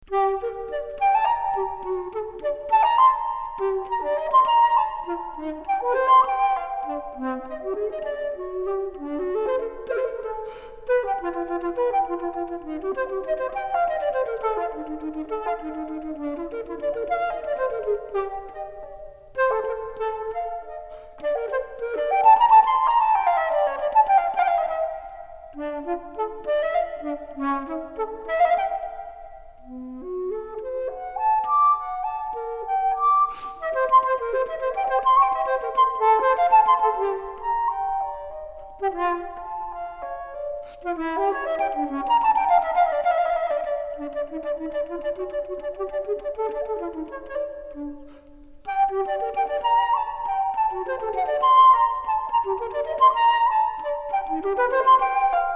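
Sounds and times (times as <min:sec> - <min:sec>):
flute sonata: 0:00.0 - 0:55.5.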